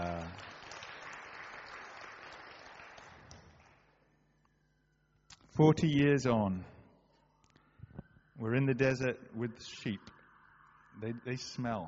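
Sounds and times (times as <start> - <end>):
audience clapping: 0.0 - 4.1
speech: 5.6 - 6.8, 8.4 - 10.2, 11.0 - 11.8.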